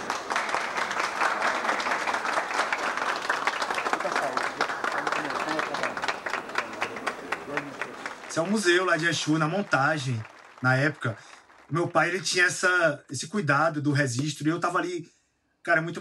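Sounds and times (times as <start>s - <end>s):
audience applause: 0.0s - 12.4s
speech: 8.4s - 15.9s.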